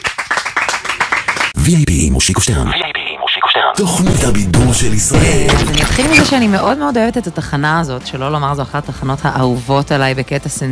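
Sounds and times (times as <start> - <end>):
small studio audience applause: 0.0 - 1.6
speech: 1.6 - 3.0, 3.6 - 10.6.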